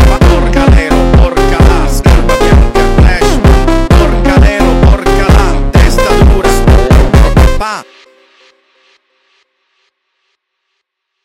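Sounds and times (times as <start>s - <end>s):
funk music: 0.0s - 7.9s.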